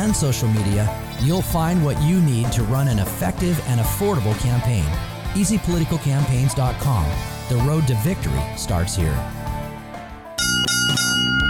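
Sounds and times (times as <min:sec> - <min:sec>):
speech: 0:00.0 - 0:09.4
loud bright bell rings: 0:10.4 - 0:11.4.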